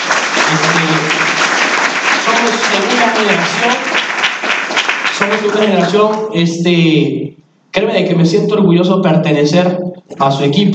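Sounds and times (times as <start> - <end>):
loud audience applause at a company stage event: 0.0 - 6.2
speech: 0.5 - 1.2, 2.3 - 4.0, 5.2 - 10.7.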